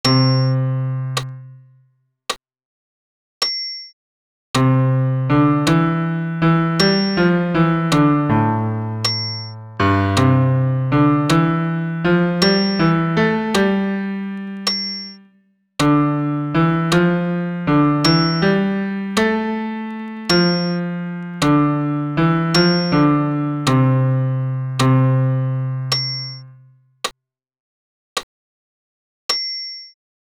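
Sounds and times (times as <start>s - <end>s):
sacred piece for solo piano: 0.0s - 1.8s, 4.6s - 26.8s.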